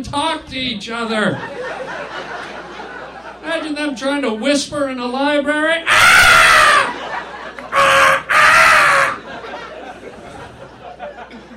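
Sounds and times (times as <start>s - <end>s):
speech: 0.0s - 2.7s, 3.4s - 7.0s
laughter: 1.4s - 3.8s, 5.9s - 11.5s
voice imitating crow caws: 5.9s - 6.9s, 7.7s - 9.2s.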